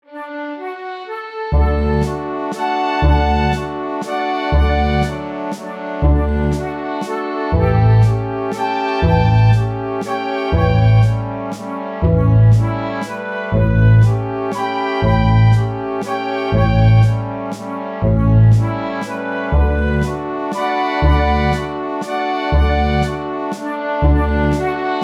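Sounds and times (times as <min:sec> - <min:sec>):
bass: 0:01.5 - 0:02.3, 0:03.0 - 0:03.8, 0:04.5 - 0:05.3, 0:06.0 - 0:06.8, 0:07.5 - 0:20.4, 0:21.0 - 0:21.8, 0:22.5 - 0:23.3, 0:24.0 - 0:25.0.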